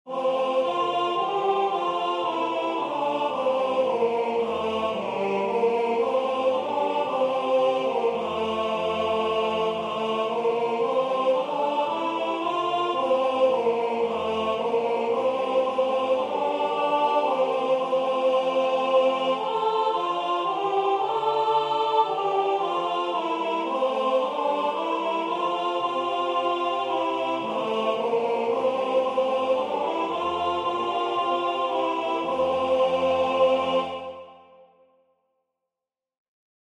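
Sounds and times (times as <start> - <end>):
alto voice singing a hymn: 0.1 - 34.4.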